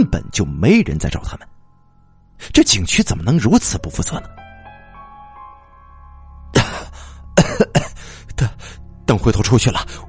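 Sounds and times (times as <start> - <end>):
speech: 0.0 - 1.5, 2.4 - 4.4, 9.1 - 10.0
man coughing: 6.6 - 8.0.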